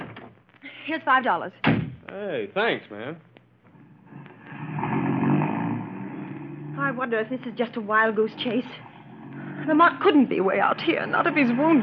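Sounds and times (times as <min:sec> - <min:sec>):
speech: 0:00.9 - 0:03.3, 0:06.8 - 0:08.9, 0:09.6 - 0:11.8
car engine passing: 0:03.7 - 0:11.8.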